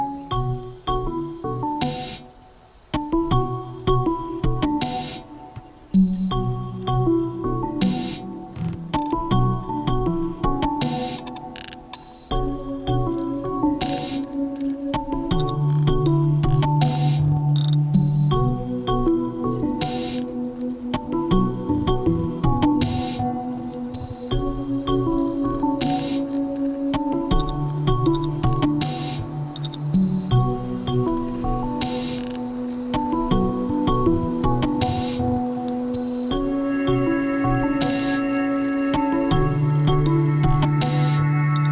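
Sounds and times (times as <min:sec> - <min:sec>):
cicadas: 0:00.0 - 0:41.7.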